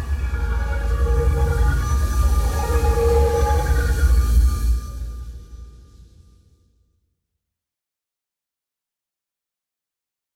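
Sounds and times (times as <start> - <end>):
ambient music: 0.0 - 6.5.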